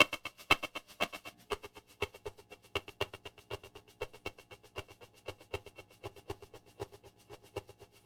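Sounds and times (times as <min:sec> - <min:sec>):
warped shaker: 0:00.0 - 0:08.0.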